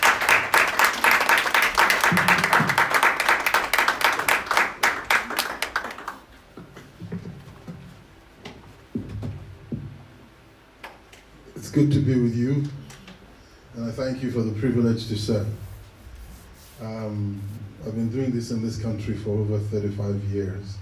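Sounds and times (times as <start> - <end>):
audience applauding to welcome a speaker: 0.0 - 6.5
speech: 2.1 - 2.4, 11.8 - 12.8, 14.0 - 15.7, 17.1 - 20.7.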